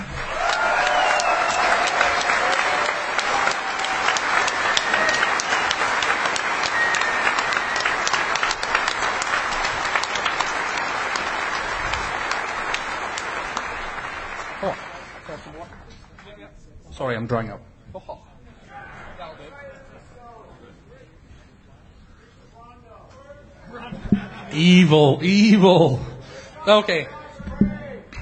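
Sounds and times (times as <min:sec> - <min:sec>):
audience applause: 0:00.0 - 0:15.8
speech: 0:17.2 - 0:17.6, 0:24.7 - 0:27.2
laughter: 0:23.7 - 0:24.9.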